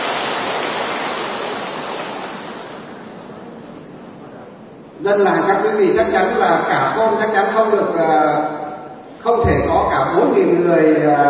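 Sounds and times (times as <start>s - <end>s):
audience applause: 0.0s - 3.0s
speech: 5.0s - 8.6s, 9.2s - 11.2s.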